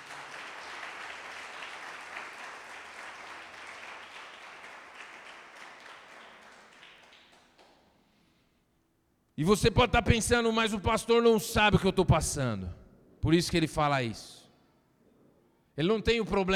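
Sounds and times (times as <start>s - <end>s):
audience applauding: 0.0s - 8.2s
speech: 9.4s - 14.4s, 15.8s - 16.5s.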